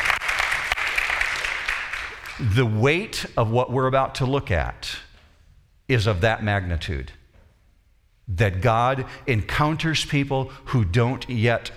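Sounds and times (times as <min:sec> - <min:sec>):
audience applause: 0:00.0 - 0:02.4
speech: 0:02.4 - 0:05.0, 0:05.9 - 0:07.2, 0:08.3 - 0:11.7.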